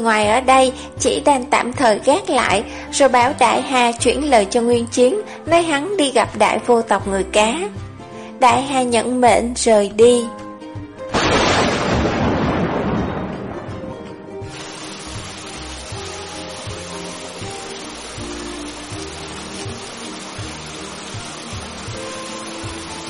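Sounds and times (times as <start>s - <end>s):
speech: 0.0s - 7.8s, 8.4s - 10.4s
heavy rain downpour: 11.1s - 13.3s, 14.5s - 23.0s
thunder crack and rolling rumble: 11.1s - 14.2s.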